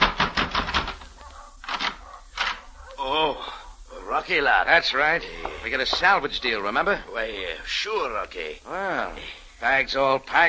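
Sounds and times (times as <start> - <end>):
pounding on a hotel room door: 0.0 - 1.0
speech: 4.1 - 10.4.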